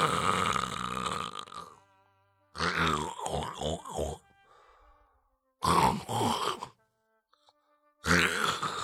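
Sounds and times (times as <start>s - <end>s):
person imitating snoring of several sleepers: 0.0s - 1.8s, 2.6s - 4.2s, 5.6s - 6.8s, 8.0s - 8.8s.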